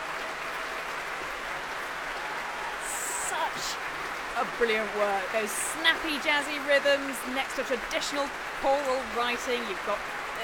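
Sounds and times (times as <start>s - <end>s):
concert hall audience applause: 0.0s - 10.4s
speech: 3.6s - 10.4s.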